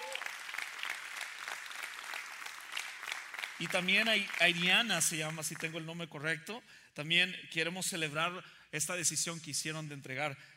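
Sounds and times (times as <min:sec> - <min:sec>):
audience clapping: 0:00.0 - 0:05.7
speech: 0:03.6 - 0:10.5.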